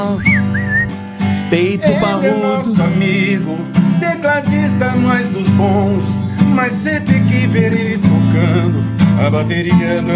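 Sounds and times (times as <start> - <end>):
person whistling an imitation of a sabiá thrush song: 0.1 - 1.0
laughter: 1.6 - 3.4
speech: 4.4 - 10.1.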